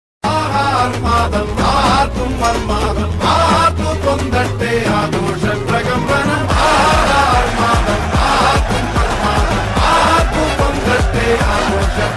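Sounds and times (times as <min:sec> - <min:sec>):
Malayalam film background music ringtone: 0:00.3 - 0:12.1
laughter: 0:05.7 - 0:12.1.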